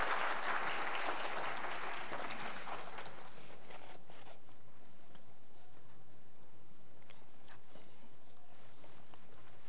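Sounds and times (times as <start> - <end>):
audience applause: 0.0 - 3.7.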